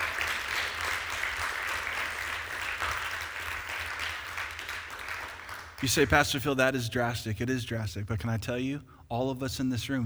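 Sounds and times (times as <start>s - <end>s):
crowd applauding: 0.0s - 6.9s
speech: 5.8s - 10.0s.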